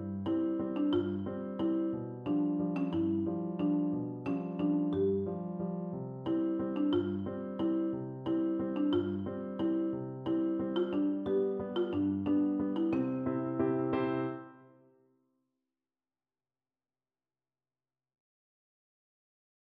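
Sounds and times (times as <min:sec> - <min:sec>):
marimba: 0:00.0 - 0:14.5.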